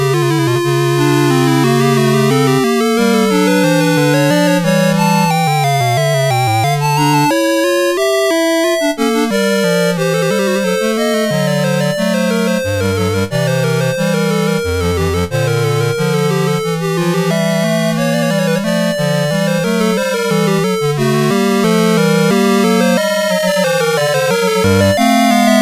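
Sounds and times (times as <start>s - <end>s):
fugue on CSG8580R5 chip: 0.0s - 25.6s.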